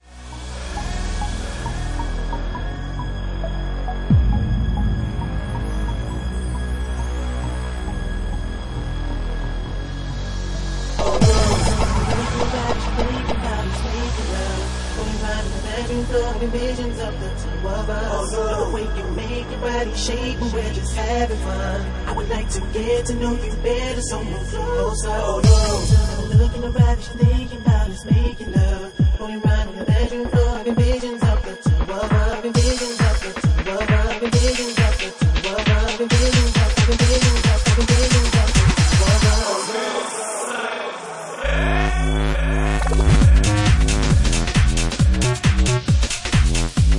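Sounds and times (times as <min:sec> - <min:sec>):
bassline mix: 0:00.0 - 0:39.5, 0:41.4 - 0:46.9.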